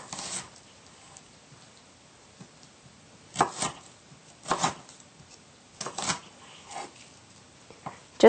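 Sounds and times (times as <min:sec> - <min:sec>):
knife dicing a shallot on a cutting board: 0:00.0 - 0:00.5, 0:03.3 - 0:04.9, 0:05.8 - 0:06.9.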